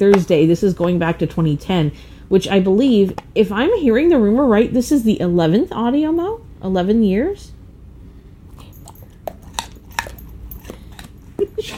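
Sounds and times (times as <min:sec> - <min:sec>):
speech: 0:00.0 - 0:07.6, 0:11.6 - 0:11.7
Labrador dog crunching carrots: 0:08.5 - 0:11.7.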